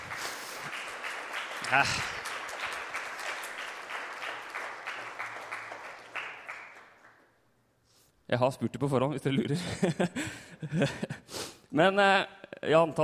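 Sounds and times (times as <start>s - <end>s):
audience applause: 0.0s - 7.3s
speech: 1.7s - 2.2s, 8.3s - 11.0s, 11.7s - 13.0s.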